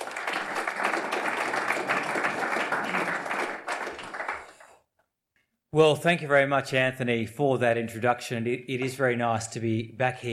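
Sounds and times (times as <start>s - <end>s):
audience applause at the Lowy Institute welcoming a minister: 0.0s - 4.8s
speech: 5.7s - 10.3s.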